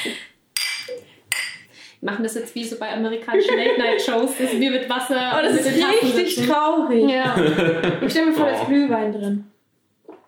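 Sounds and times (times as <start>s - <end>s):
glasses clinking in a toast: 0.6s - 1.7s
speech: 2.0s - 9.5s
laughter: 3.3s - 8.8s.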